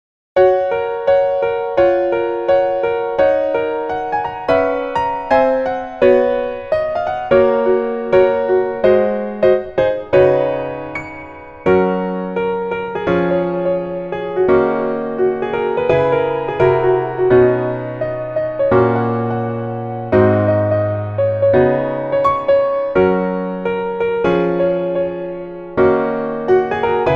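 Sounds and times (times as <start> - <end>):
piano melody in female key: 0.4 - 27.1.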